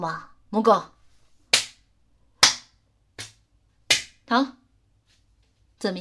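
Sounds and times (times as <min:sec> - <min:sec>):
speech: 0:00.0 - 0:01.0, 0:04.3 - 0:04.6, 0:05.8 - 0:06.0
slapping one's own face: 0:01.5 - 0:04.2.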